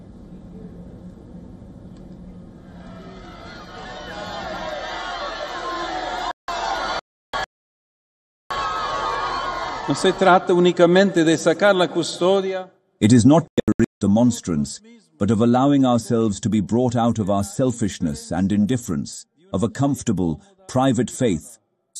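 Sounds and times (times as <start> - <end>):
crowd cheering at outdoor papal mass: 2.6 - 7.5, 8.5 - 11.9
speech: 9.9 - 21.9.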